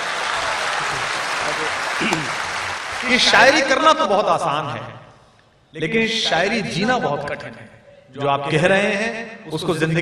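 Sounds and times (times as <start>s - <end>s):
audience applause in a hall: 0.0s - 3.6s
speech: 3.0s - 5.0s, 5.7s - 9.9s.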